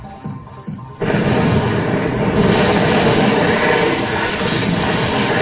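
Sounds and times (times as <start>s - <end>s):
caesium exploding in water: 1.0s - 5.3s.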